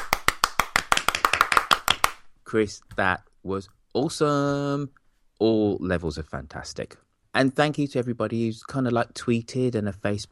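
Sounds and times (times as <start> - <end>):
brief hand clapping: 0.0 - 2.3
speech: 2.5 - 10.3.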